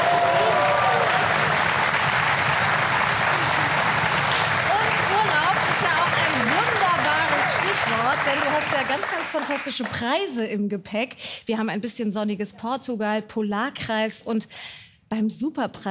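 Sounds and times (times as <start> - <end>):
studio audience applause: 0.0 - 10.3
speech: 8.8 - 15.9.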